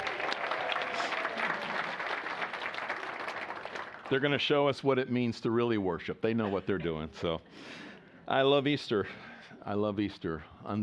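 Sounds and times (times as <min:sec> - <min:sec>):
faint applause at an Easter morning church service: 0:00.0 - 0:04.2
speech: 0:04.1 - 0:10.8.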